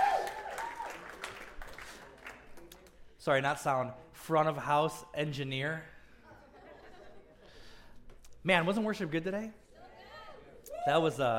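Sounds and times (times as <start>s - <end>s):
audience applause: 0.0s - 2.7s
speech: 3.2s - 6.0s, 8.4s - 9.6s, 10.8s - 11.3s
laughter: 6.2s - 7.8s.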